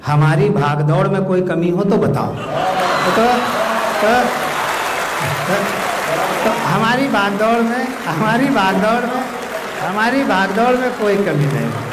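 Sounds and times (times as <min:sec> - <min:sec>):
speech: 0:00.1 - 0:04.5, 0:05.2 - 0:11.9
audience applause at a poetry gathering: 0:02.5 - 0:11.9.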